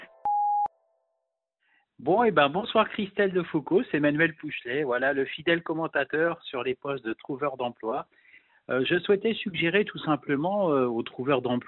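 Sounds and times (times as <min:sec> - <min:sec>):
answering machine beep: 0:00.0 - 0:00.7
speech: 0:02.0 - 0:11.6.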